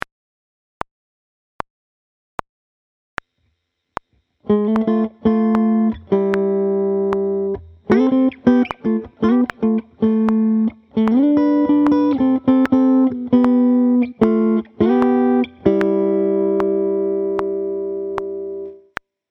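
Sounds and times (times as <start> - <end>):
pop sixths: 4.0 - 17.6.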